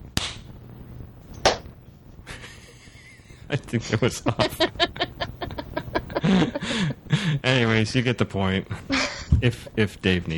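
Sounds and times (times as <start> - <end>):
hand clap for recording sync: 0.2 - 0.5, 1.4 - 1.7
laughter: 2.3 - 7.5, 8.7 - 9.8
speech: 3.5 - 4.9, 7.5 - 10.3.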